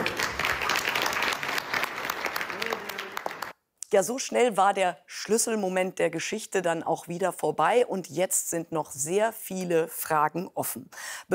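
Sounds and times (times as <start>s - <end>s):
audience applause: 0.0s - 3.5s
speech: 3.9s - 11.3s.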